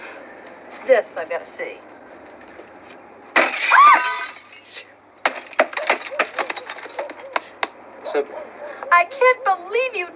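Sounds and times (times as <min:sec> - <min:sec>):
speech: 0:00.8 - 0:01.9, 0:08.1 - 0:10.1
glass shards falling and clinking: 0:03.4 - 0:07.4
window glass being smashed: 0:03.4 - 0:07.4.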